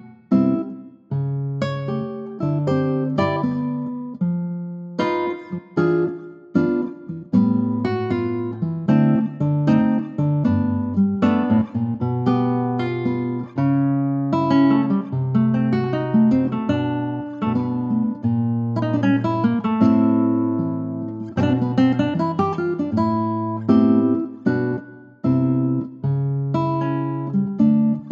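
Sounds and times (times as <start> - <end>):
acoustic guitar in G: 0.0 - 28.1.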